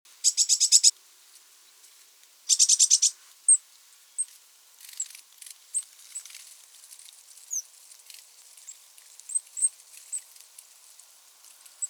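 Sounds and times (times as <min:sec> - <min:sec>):
Eurasian blue tit churring: 0:00.2 - 0:00.9, 0:02.5 - 0:03.1.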